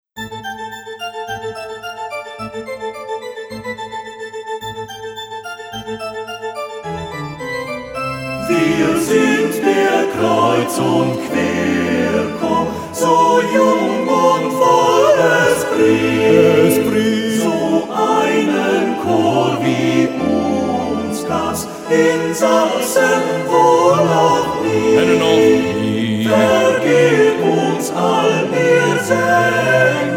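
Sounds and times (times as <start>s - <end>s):
choir singing: 6.8s - 30.1s.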